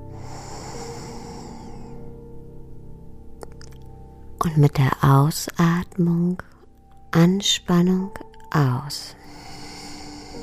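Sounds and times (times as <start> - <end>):
slow inhaling breath during a guided breathing exercise: 0.0 - 2.2, 9.2 - 10.4
speech: 4.4 - 6.5, 7.1 - 9.2.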